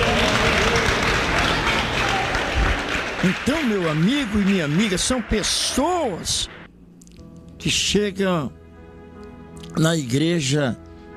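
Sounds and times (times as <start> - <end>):
crowd applauding: 0.0 - 6.7
speech: 3.2 - 6.6, 7.6 - 8.6, 9.8 - 10.8.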